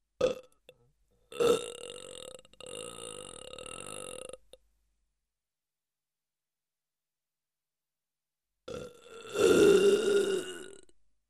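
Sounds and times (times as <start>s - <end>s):
comedic slow burp: 0.2s - 4.6s, 8.7s - 11.0s.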